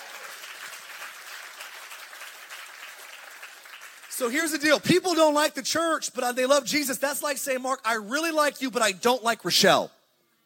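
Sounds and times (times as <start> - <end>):
audience clapping: 0.0 - 4.8
speech: 4.2 - 10.0.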